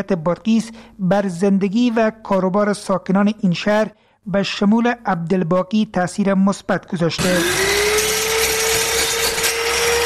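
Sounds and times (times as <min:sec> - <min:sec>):
speech: 0:00.0 - 0:07.7
electric woodworking machine cutting wood in a carpentry shop in Qala-i-Naw, Badghis: 0:07.2 - 0:10.0.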